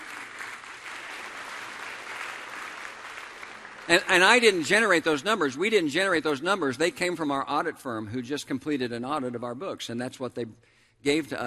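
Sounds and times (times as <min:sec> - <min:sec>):
audience clapping: 0:00.0 - 0:05.0
speech: 0:03.9 - 0:11.4.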